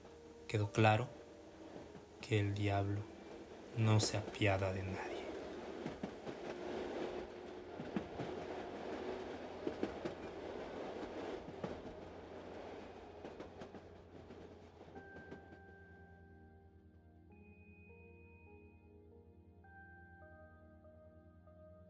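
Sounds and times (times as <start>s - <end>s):
train passing: 0.0s - 16.1s
speech: 0.5s - 1.2s, 2.3s - 3.1s, 3.7s - 5.1s
wheels clickety-clack over rail joints: 1.7s - 15.4s.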